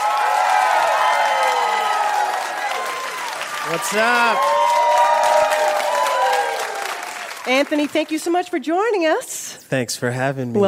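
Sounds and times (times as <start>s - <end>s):
studio audience whoops and shouts: 0.0s - 7.2s
studio audience applauding a guest's entrance: 0.0s - 8.4s
speech: 3.7s - 4.6s, 7.4s - 10.6s.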